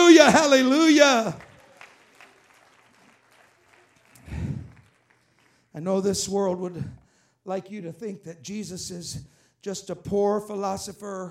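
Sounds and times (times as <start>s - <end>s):
audience clapping hands: 0.0s - 6.4s
speech: 0.3s - 1.5s, 5.8s - 11.3s.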